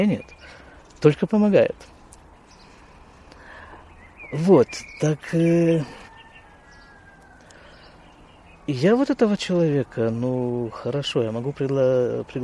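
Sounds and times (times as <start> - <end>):
speech: 0.0 - 2.0, 4.3 - 6.0, 8.7 - 12.4
rooster crowing: 5.8 - 7.8.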